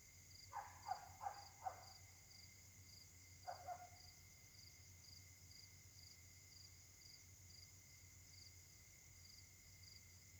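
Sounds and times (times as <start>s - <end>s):
pulsing insect chorus: 0.0s - 10.3s
dog barking: 0.5s - 2.0s, 3.5s - 4.0s.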